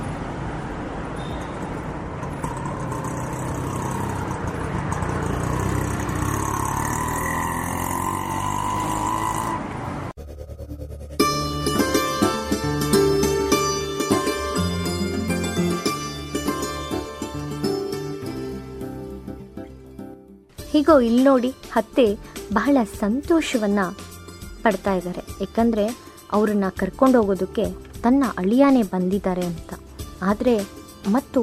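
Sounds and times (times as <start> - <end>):
auto rickshaw engine rumbling: 0.0 - 31.4
music: 10.2 - 31.4
speech: 20.8 - 31.4.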